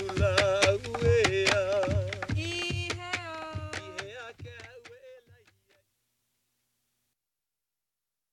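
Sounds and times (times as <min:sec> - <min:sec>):
Polynesian fertility chant singing from the South Seas: 0:00.0 - 0:05.8.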